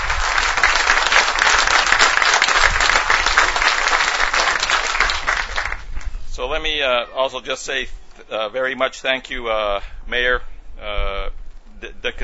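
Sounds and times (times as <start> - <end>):
audience applause: 0.0 - 6.1
speech: 6.5 - 12.2.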